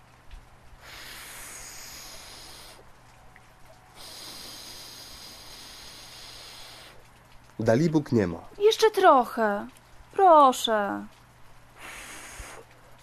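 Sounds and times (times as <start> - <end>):
person blowing on dying fire embers: 0.8 - 2.9, 3.9 - 7.1, 11.8 - 12.8
speech: 7.6 - 11.2.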